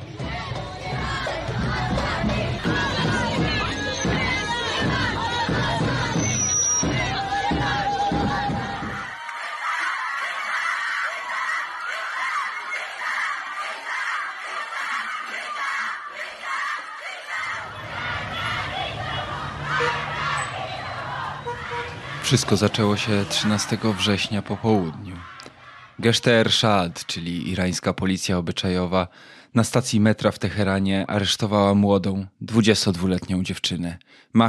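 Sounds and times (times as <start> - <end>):
protest crowd chanting in Iranian city streets: 0.0 - 27.7
whistling: 5.9 - 8.2
speech: 22.3 - 25.3, 26.0 - 34.4.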